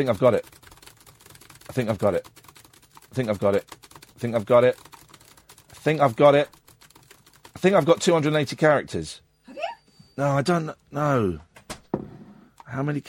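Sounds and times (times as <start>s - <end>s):
speech: 0.0s - 0.6s, 1.8s - 2.4s, 3.2s - 4.9s, 5.8s - 6.6s, 7.6s - 9.2s, 10.2s - 11.5s, 12.7s - 13.0s
typing on a computer keyboard: 0.0s - 8.7s.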